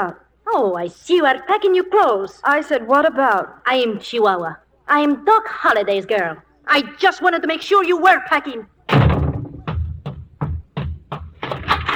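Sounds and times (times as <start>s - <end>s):
speech: 0.0s - 9.0s
doors slamming: 8.9s - 11.9s
clatter: 11.1s - 11.9s.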